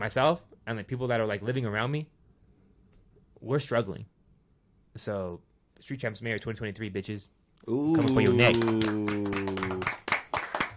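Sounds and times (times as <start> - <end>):
speech: 0.0 - 2.2, 3.4 - 4.2, 5.0 - 9.4
quick uneven hand claps: 7.9 - 10.7.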